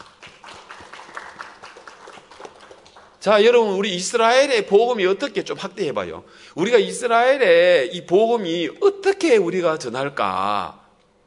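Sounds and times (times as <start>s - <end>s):
crowd applause: 0.0s - 3.2s
speech: 3.2s - 10.8s.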